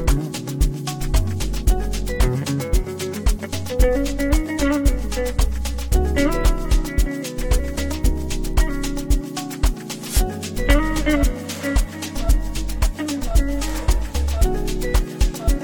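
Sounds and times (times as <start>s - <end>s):
guitars: 0.0s - 15.6s
saxophone: 6.2s - 7.3s, 10.7s - 14.6s.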